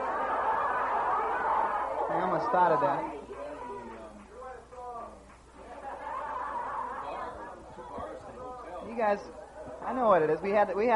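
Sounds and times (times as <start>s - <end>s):
crowd chatter: 0.0s - 10.9s
speech: 2.2s - 3.2s, 9.0s - 10.9s
laughter: 5.6s - 8.1s.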